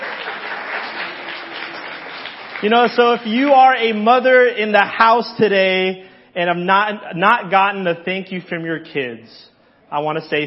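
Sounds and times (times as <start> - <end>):
crowd applauding: 0.0 - 3.5
speech: 2.6 - 10.4.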